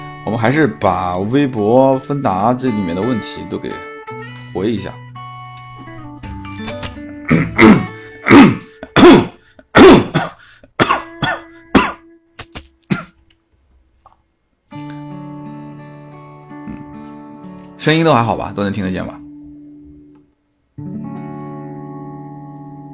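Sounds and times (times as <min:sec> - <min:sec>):
speech: 0:00.2 - 0:03.9, 0:04.5 - 0:05.0, 0:07.4 - 0:07.9, 0:17.9 - 0:19.2
loud harsh coughs: 0:07.2 - 0:12.0, 0:12.9 - 0:13.2
throat clearing: 0:07.3 - 0:12.0, 0:12.9 - 0:13.2, 0:16.6 - 0:17.0.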